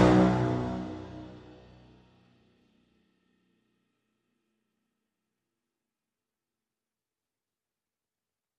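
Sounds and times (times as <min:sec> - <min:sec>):
full brass swell crescendo: 0:00.0 - 0:01.9.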